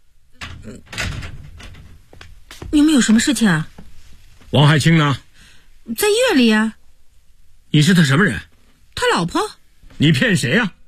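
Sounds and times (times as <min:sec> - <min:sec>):
door being opened: 0:00.3 - 0:03.6
speech: 0:00.6 - 0:01.4, 0:02.7 - 0:03.7, 0:04.5 - 0:05.2, 0:05.9 - 0:06.8, 0:07.7 - 0:10.8.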